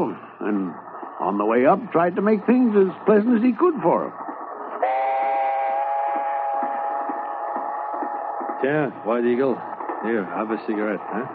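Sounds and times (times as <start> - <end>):
speech: 0.0 - 4.2, 8.6 - 11.3
train wheels clacking over rail joints: 3.3 - 11.3
long sustained train whistle: 4.8 - 6.9.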